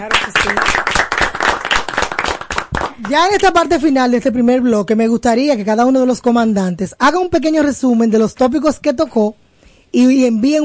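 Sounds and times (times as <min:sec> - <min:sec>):
speech: 0:00.0 - 0:01.2, 0:03.0 - 0:10.6
studio applause: 0:00.0 - 0:03.7.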